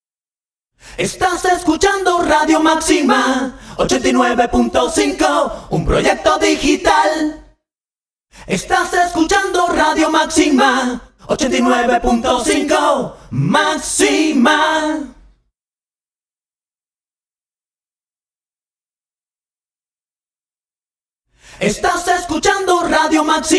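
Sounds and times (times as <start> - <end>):
solo voices: 1.0 - 7.5, 8.5 - 15.3, 21.6 - 23.5.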